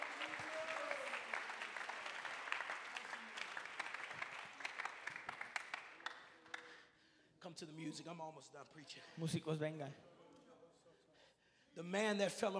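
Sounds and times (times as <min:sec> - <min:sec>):
audience clapping hands: 0:00.0 - 0:06.8
speech: 0:07.6 - 0:10.1, 0:11.8 - 0:12.5.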